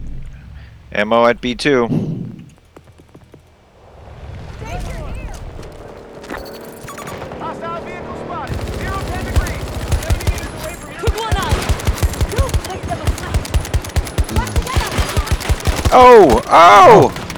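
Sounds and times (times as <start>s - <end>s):
speech: 0.9s - 2.0s, 15.9s - 17.2s
shooter video game gunfire, shots fired at a barrel: 4.8s - 17.3s.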